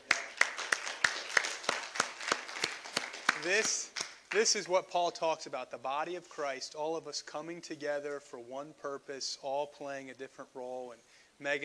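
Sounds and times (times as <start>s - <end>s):
round of applause: 0.0s - 4.6s
speech: 3.4s - 11.6s.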